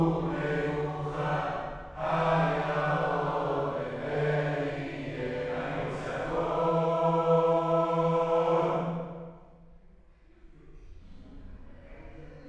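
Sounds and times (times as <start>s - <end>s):
choir singing: 0.0s - 9.6s.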